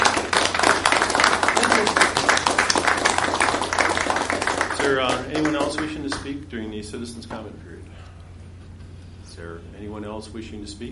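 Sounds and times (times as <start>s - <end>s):
round of applause: 0.0s - 6.3s
speech: 4.9s - 8.1s, 9.4s - 10.8s.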